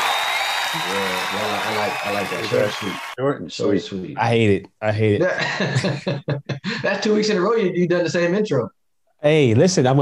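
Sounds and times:
audience applause: 0.0s - 3.2s
speech: 0.7s - 9.9s
laughter: 5.2s - 7.0s.

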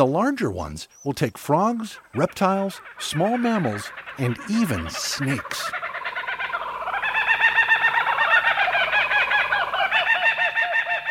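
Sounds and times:
speech: 0.0s - 5.8s
Australian laughing kookaburra call: 2.2s - 11.0s.

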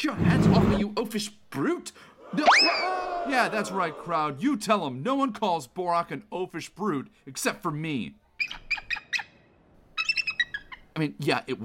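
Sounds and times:
speech: 0.0s - 8.8s, 11.0s - 11.6s
bird squawking: 8.4s - 11.0s.

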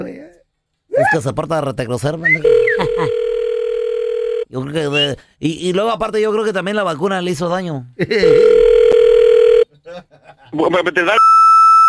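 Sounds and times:
speech: 1.0s - 3.2s, 4.5s - 8.6s, 10.5s - 11.3s
telephone dial tone: 2.5s - 4.5s, 8.3s - 9.6s.

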